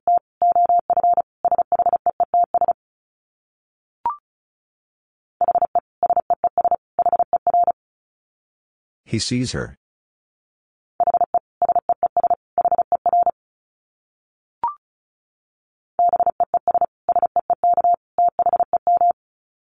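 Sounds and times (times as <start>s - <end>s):
Morse code beeps at 35 wpm: 0.1s - 2.8s, 5.4s - 7.8s, 11.0s - 13.4s, 16.0s - 19.2s
speech: 9.1s - 9.8s.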